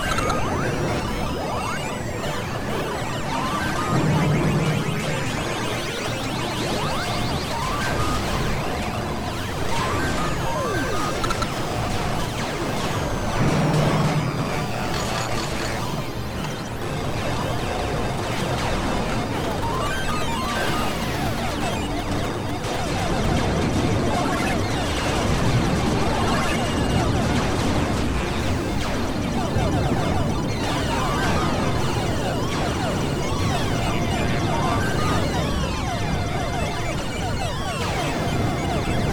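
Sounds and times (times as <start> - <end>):
arcade ambience: 0.0 - 39.1.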